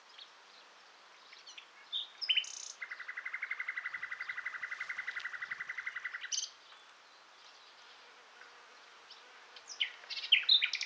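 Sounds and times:
common nightingale song: 0.0s - 7.9s, 9.1s - 10.8s.

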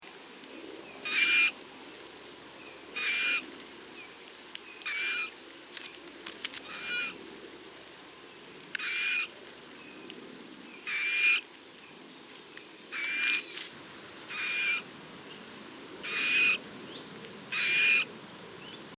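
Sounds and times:
Pyrrhula pyrrhula calling: 1.0s - 1.6s, 3.0s - 3.4s, 4.8s - 5.3s, 6.6s - 7.2s, 8.8s - 9.3s, 10.8s - 11.4s, 12.9s - 13.6s, 14.3s - 14.9s, 16.0s - 16.6s, 17.5s - 18.8s.

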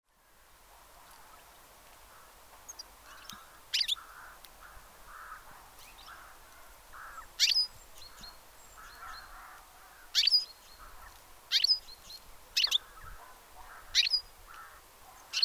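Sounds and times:
European goldfinch Carduelis carduelis twittering: 2.7s - 6.3s, 7.0s - 15.4s.

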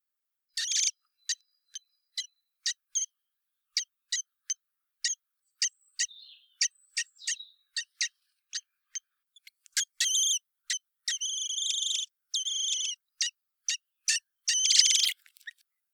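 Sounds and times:
common blackbird Turdus merula hard dry chink calls: 0.5s - 3.0s, 5.1s - 8.7s, 9.4s - 15.5s.

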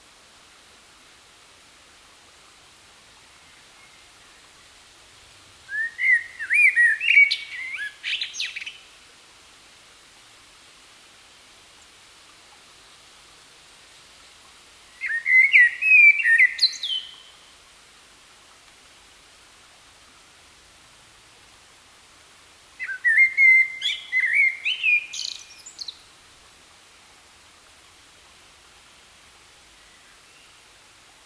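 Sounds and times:
Common blackbird song: 5.7s - 8.9s, 15.0s - 17.3s, 22.8s - 26.0s.

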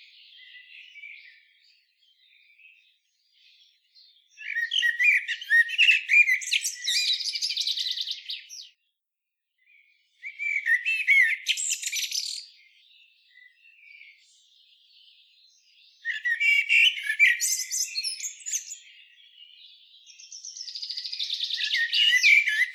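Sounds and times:
common blackbird Turdus merula squeaky notes and twittering: 4.3s - 8.8s, 10.2s - 22.7s.

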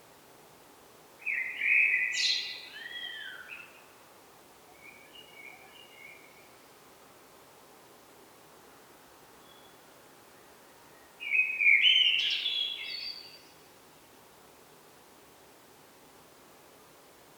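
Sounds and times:
Eurasian blackbird Turdus merula song: 1.2s - 3.9s, 4.8s - 6.7s, 10.4s - 13.6s.

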